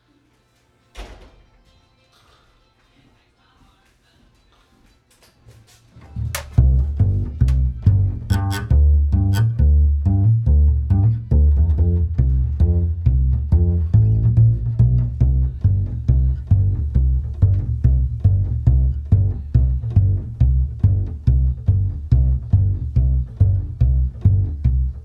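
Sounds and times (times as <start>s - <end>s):
bass: 6.0s - 25.0s.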